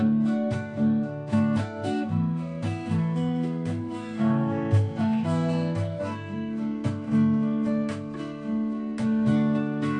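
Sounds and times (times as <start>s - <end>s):
acoustic guitar: 0.0s - 9.9s.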